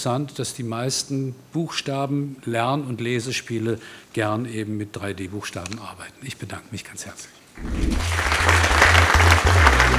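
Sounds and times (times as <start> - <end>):
speech: 0.0 - 8.8
low rumble: 7.6 - 9.2
audience applause: 7.6 - 9.9.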